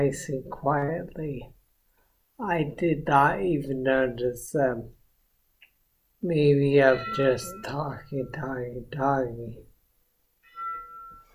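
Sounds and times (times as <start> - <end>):
speech: 0.0 - 1.6, 2.4 - 5.0, 6.2 - 9.7
lunch bell ringing: 6.6 - 8.8, 10.4 - 11.3.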